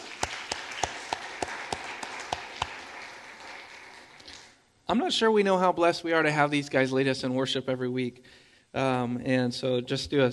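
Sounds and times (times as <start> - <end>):
audience applause: 0.0 - 4.6
sharp evenly spaced claps: 0.0 - 4.6
speech: 4.9 - 10.3.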